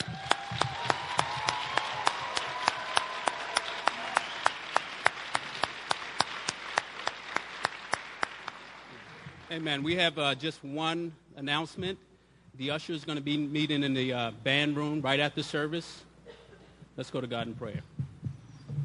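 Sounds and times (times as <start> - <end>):
audience applause: 0.0 - 9.6
speech: 9.6 - 16.1, 17.0 - 17.9.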